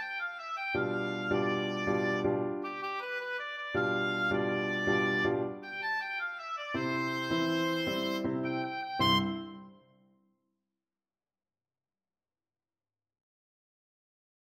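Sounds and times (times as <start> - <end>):
oboe melody: 0.0 - 9.9.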